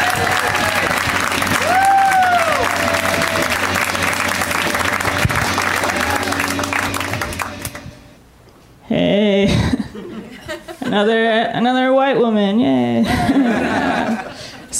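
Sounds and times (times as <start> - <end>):
crowd cheering and whooping: 0.0 - 7.7
audience clapping for a comedian at a stand-up show: 0.0 - 8.0
laughter: 9.4 - 11.1, 13.0 - 14.7
speech: 11.0 - 13.6.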